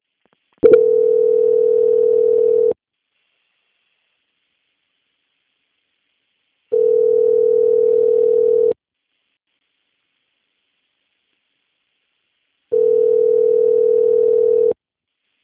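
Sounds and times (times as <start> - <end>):
telephone tones during call transfer: 0.7 - 2.8, 6.7 - 8.8, 12.7 - 14.8.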